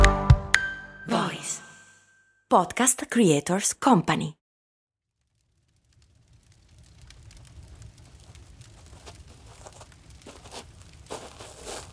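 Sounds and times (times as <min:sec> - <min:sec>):
speech: 0:02.5 - 0:04.4
crackling campfire: 0:05.0 - 0:11.9.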